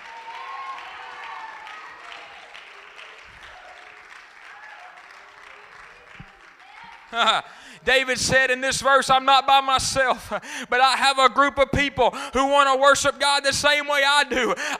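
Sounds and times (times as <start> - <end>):
audience clapping: 0.0 - 7.8
speech: 7.1 - 14.7.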